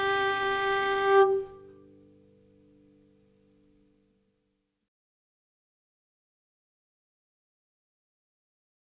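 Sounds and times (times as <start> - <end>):
waltz music: 0.0 - 1.7.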